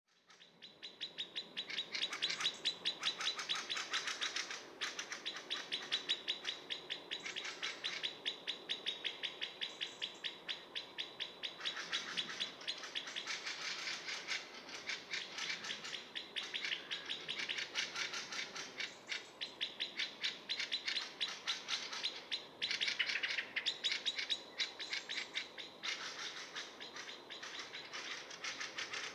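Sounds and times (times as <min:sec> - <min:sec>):
Eurasian blackbird chinking calls: 0:00.2 - 0:29.1.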